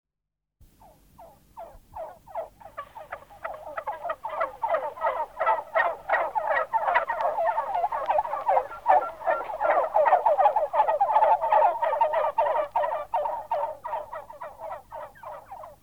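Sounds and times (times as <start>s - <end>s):
male turkeys gobbling in chorus: 0.8s - 15.8s.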